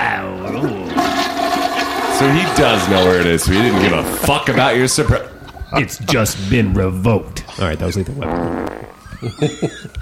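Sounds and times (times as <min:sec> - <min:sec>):
toilet flush sound effect: 0:00.4 - 0:05.6
laughter: 0:02.2 - 0:08.0, 0:08.8 - 0:10.0
speech: 0:02.2 - 0:10.0.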